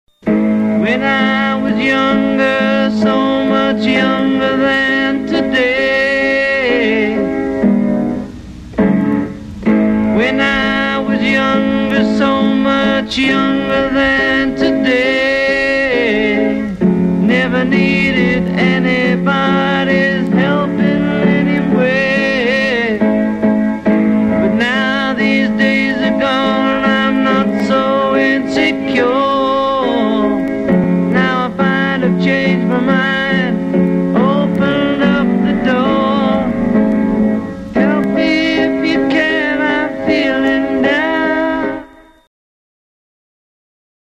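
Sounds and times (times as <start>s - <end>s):
piano: 0.1s - 42.3s.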